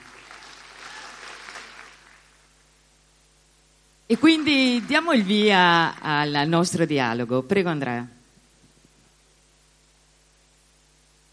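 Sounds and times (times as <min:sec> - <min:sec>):
audience applause: 0:00.0 - 0:02.5, 0:04.1 - 0:06.2
speech: 0:04.1 - 0:08.2.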